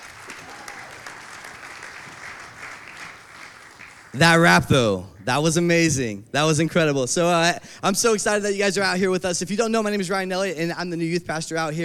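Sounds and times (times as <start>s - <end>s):
audience applauding a band at a youth gathering: 0.0s - 4.2s
speech: 4.2s - 11.8s.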